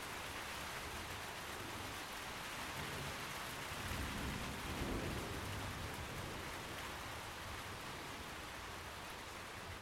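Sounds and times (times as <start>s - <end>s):
rain below forest canopy during thunderstorm: 0.0s - 9.8s.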